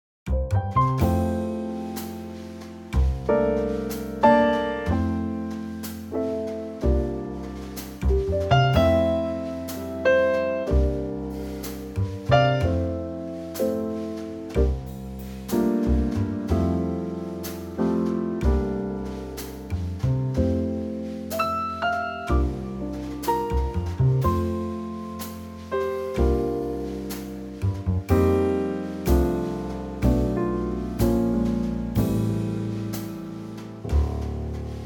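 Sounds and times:
trio music in F: 0.3 - 34.8.

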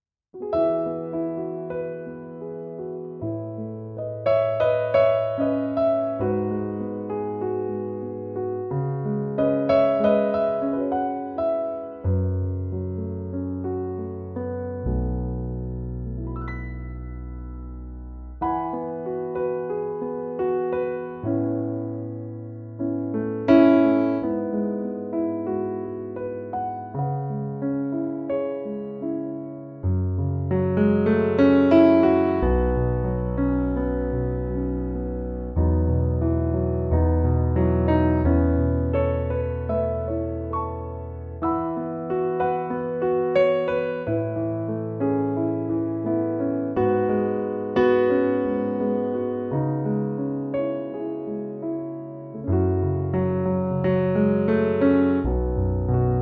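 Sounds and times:
piano note E: 0.4 - 56.2.

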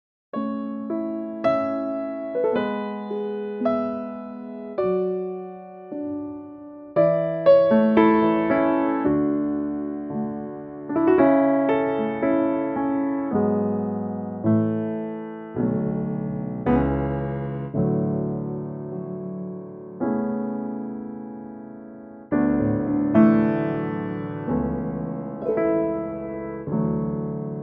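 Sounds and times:
piano: 0.3 - 27.6.

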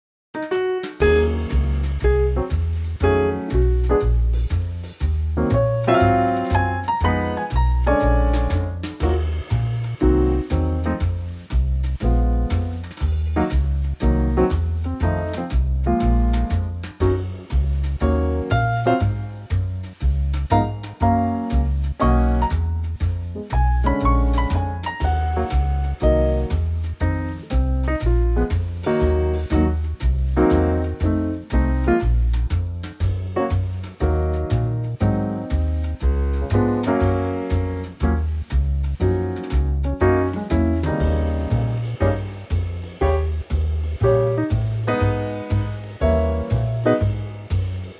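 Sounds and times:
EBM backing track for male vocals: 0.5 - 47.9.

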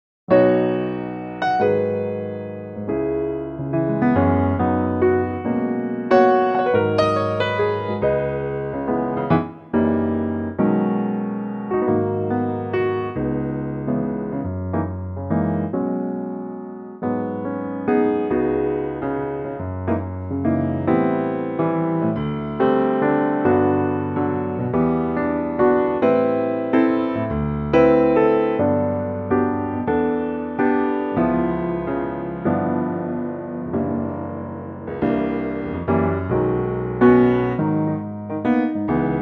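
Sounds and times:
piano note B: 0.3 - 39.1.

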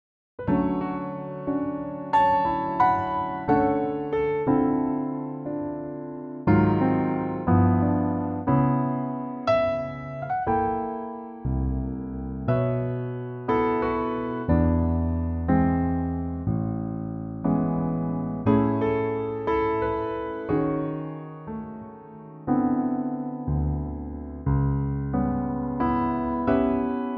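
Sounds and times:
piano: 0.4 - 27.1.

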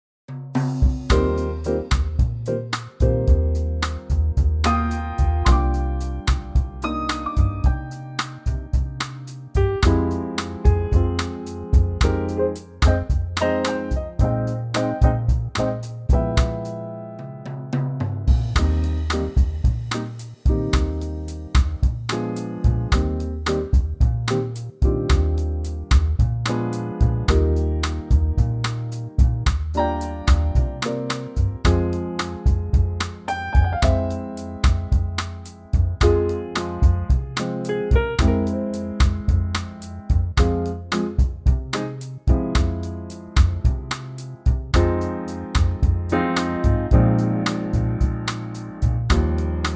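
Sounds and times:
bossa music in E flat and F: 0.4 - 49.7.

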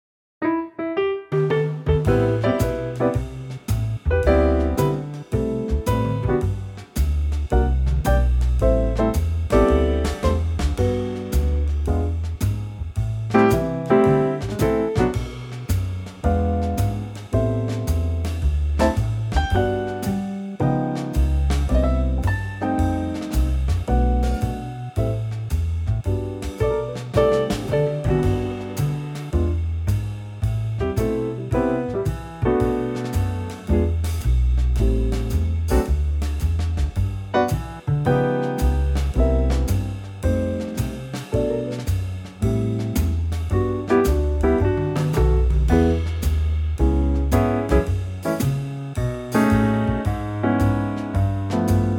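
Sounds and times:
music trio in G: 1.2 - 51.9.

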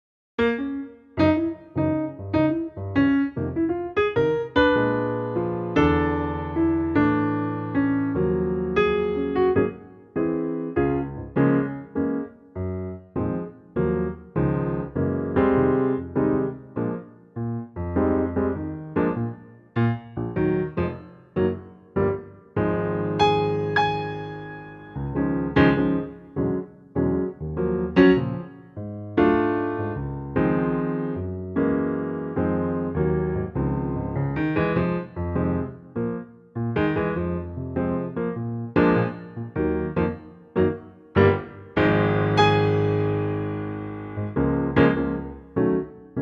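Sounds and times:
piano in D-flat: 0.4 - 46.1.

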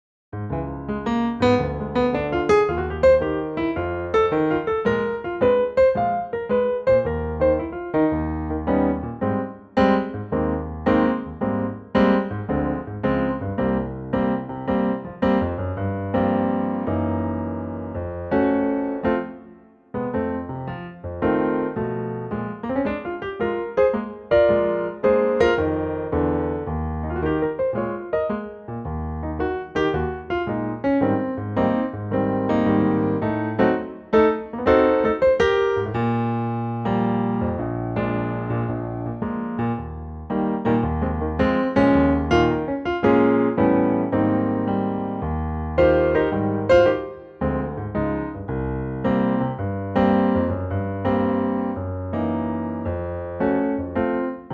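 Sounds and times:
piano in A-flat: 0.3 - 54.5.

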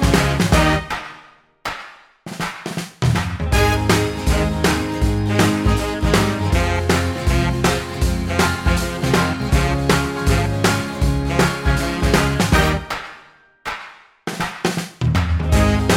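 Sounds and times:
backing track in A flat: 0.0 - 1.2, 3.0 - 13.2, 15.2 - 15.9.

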